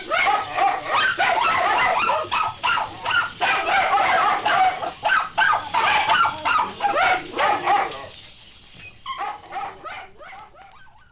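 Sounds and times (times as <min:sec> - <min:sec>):
dogs yelping and whining: 0:00.0 - 0:11.1.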